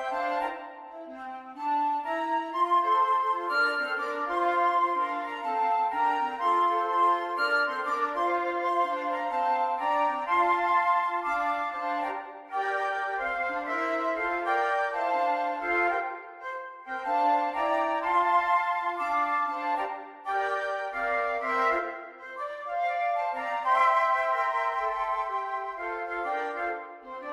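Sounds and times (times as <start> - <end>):
flute quartet playing: 0.0 - 27.3.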